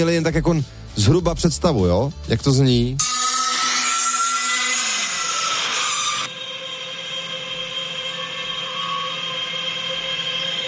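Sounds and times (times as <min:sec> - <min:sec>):
speech: 0:00.0 - 0:03.3
tonal whine: 0:03.0 - 0:10.6
data center cooling fans roaring: 0:03.7 - 0:10.6.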